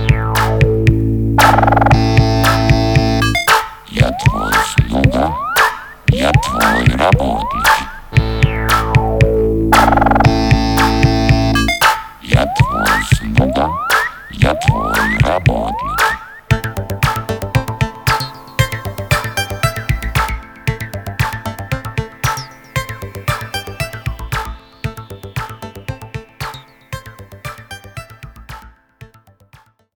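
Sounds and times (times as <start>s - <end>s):
house synthpop music: 0.0s - 28.8s.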